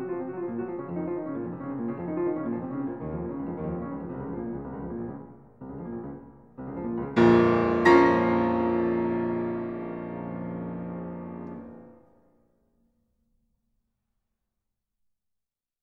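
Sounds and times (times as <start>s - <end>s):
sonata in B-flat minor: 0.0s - 12.0s.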